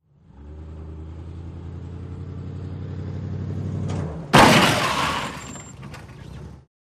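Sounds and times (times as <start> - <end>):
moving vehicle colliding with stationary vehicle: 3.8 - 6.6
tire squeak: 4.8 - 6.7.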